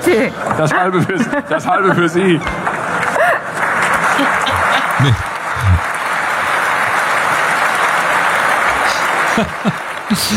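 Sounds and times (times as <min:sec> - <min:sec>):
speech: 0:00.1 - 0:02.6, 0:05.0 - 0:05.8, 0:09.4 - 0:10.3
laughter: 0:00.6 - 0:06.0, 0:08.4 - 0:10.3
audience applause: 0:02.6 - 0:10.3.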